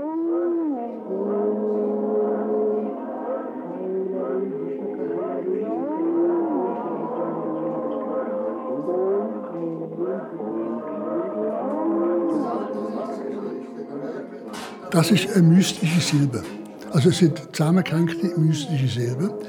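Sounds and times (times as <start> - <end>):
constant mantra chant over house loudspeakers, low droning voices: 0.0 - 19.4
speech: 14.9 - 19.4.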